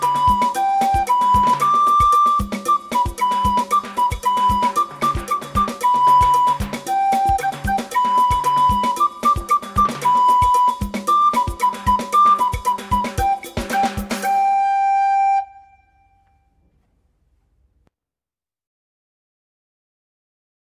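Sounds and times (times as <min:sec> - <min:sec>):
drum: 0:00.0 - 0:14.5
trumpet: 0:00.0 - 0:16.4.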